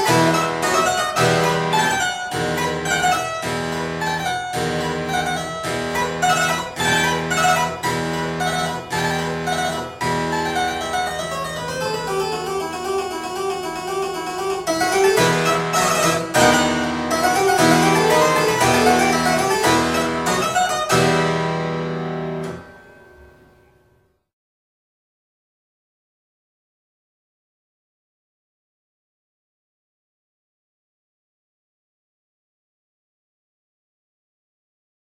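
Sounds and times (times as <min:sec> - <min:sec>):
harpsichord piece: 0:00.0 - 0:23.7.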